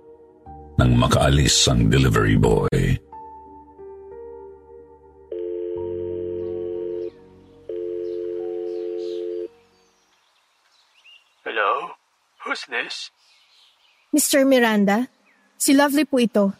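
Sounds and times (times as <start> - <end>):
speech: 0.8 - 3.1, 12.8 - 13.2, 14.1 - 16.5
cellphone ringing tones: 5.3 - 9.5
cellphone dialing beeps: 7.7 - 9.5.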